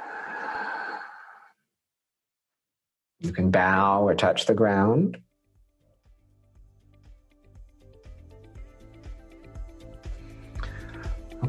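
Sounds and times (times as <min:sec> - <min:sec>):
deep breath in and out: 0:00.0 - 0:01.6, 0:09.8 - 0:11.4
speech: 0:03.2 - 0:05.3.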